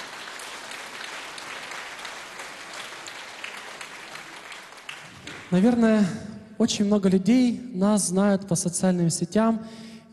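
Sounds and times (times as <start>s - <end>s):
crowd applauding: 0.0s - 5.8s
speech: 5.5s - 9.9s.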